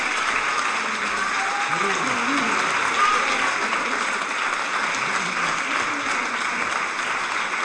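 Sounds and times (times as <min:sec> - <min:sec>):
audience applause: 0:00.0 - 0:07.6.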